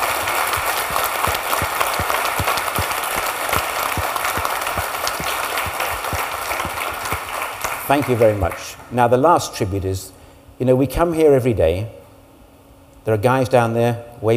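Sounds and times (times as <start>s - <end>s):
crowd round of applause: 0.0s - 8.6s
speech: 7.9s - 12.0s, 13.0s - 14.3s.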